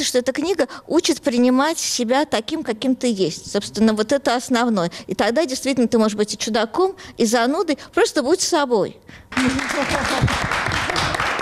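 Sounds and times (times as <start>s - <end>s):
speech: 0.0s - 10.6s
audience applause: 9.4s - 11.4s.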